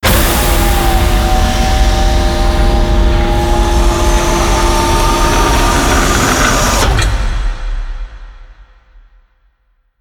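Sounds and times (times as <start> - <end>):
elevator: 0.1 - 7.3.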